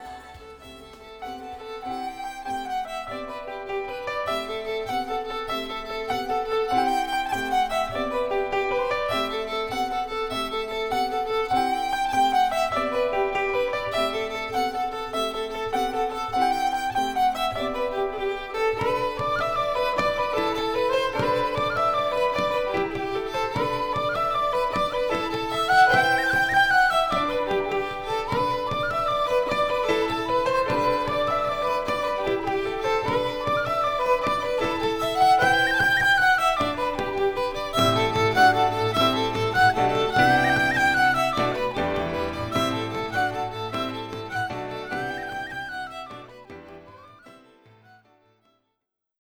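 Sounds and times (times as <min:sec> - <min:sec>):
instrumental music: 0:00.0 - 0:48.4.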